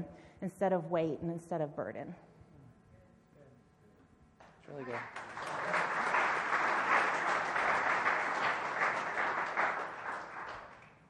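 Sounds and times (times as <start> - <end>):
speech: 0.0 - 2.3, 4.7 - 5.4
audience clapping after an answer in a conversation: 4.4 - 11.0.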